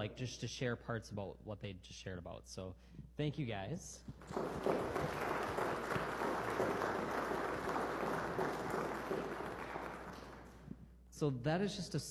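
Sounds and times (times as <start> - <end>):
speech: 0.0 - 5.4, 11.2 - 12.0
audience applause: 4.2 - 10.6.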